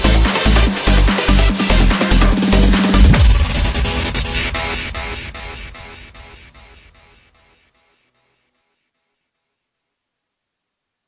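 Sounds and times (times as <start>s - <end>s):
hard dance music: 0.0s - 6.9s.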